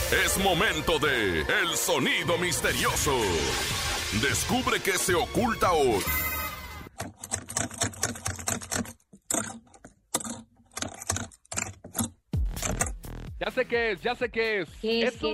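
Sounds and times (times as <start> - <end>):
speech: 0.1 - 6.3, 13.6 - 15.3
dog scratching a door: 6.9 - 12.9.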